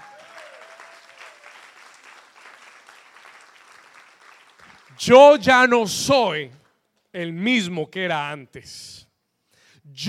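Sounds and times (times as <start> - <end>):
audience applause: 0.0 - 4.9
speech: 5.0 - 9.1, 9.9 - 10.0.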